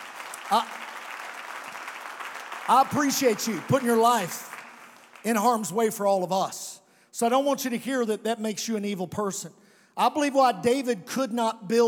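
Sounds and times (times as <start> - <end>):
crowd clapping: 0.0 - 6.0
speech: 0.5 - 0.8, 2.7 - 4.5, 5.2 - 11.8.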